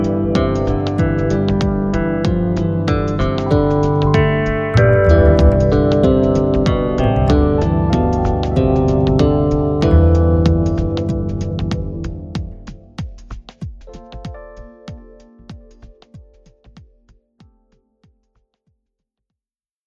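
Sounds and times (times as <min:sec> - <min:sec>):
bass music: 0:00.0 - 0:14.7.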